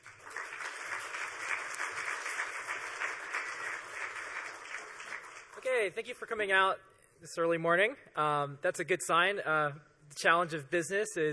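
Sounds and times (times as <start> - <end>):
audience applause: 0.0 - 5.7
speech: 5.6 - 11.3.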